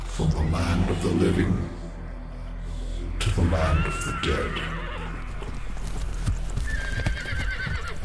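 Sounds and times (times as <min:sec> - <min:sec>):
speech: 0:00.2 - 0:01.8, 0:03.4 - 0:04.8
horse whinny: 0:04.1 - 0:05.3, 0:06.7 - 0:08.0
horse hooves clip-clopping: 0:05.2 - 0:08.0.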